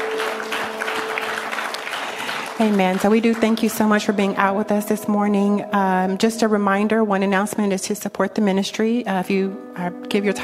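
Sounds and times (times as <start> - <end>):
congregation applause in a church: 0.0 - 4.3
speech: 2.6 - 10.4.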